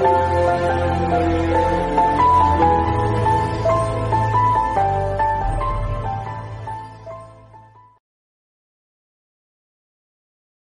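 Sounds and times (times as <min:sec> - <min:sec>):
flute: 0:00.0 - 0:07.2
instrumental piano Telugu ringtone: 0:00.0 - 0:08.0.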